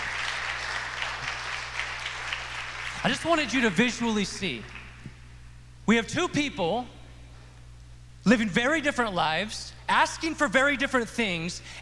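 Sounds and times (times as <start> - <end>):
audience clapping hands: 0.0 - 3.9, 4.5 - 5.1
speech: 3.0 - 4.8, 5.9 - 7.0, 8.2 - 11.8.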